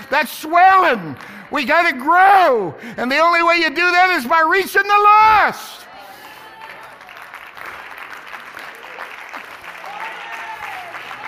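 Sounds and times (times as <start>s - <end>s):
audience clapping: 0.0s - 2.0s, 5.9s - 11.2s
speech: 0.1s - 5.8s.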